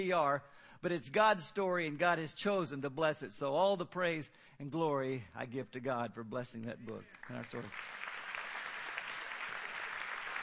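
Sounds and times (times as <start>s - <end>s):
speech: 0.0s - 8.1s
audience applause: 7.2s - 10.4s.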